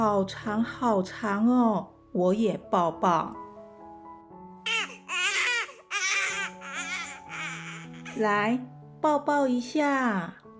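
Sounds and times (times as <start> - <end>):
speech: 0.0 - 3.4, 8.2 - 10.4
baby crying: 4.7 - 8.2.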